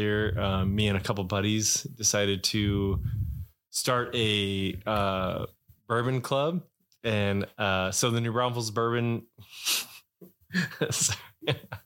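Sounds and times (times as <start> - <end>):
speech: 0.0 - 9.9, 10.5 - 11.8
loud breathy exhale blown into a microphone: 2.8 - 3.5.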